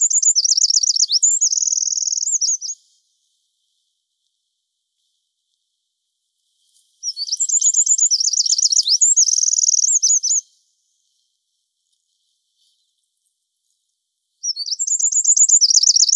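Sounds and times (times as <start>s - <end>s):
Eurasian wren singing: 0.0s - 2.8s, 7.0s - 10.4s, 14.4s - 16.1s.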